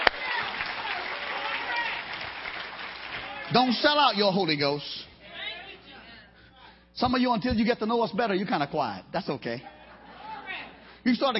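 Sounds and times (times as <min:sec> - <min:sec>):
audience clapping: 0:00.0 - 0:04.6
speech: 0:03.5 - 0:05.1, 0:07.0 - 0:09.7, 0:11.0 - 0:11.3.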